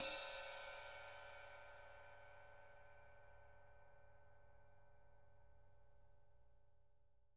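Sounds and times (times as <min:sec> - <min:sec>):
ride cymbal: 0:00.0 - 0:02.0.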